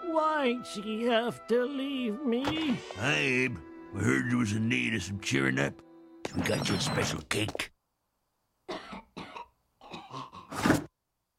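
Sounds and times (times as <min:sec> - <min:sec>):
speech: 0:00.2 - 0:07.8
hacking cough: 0:08.7 - 0:10.7.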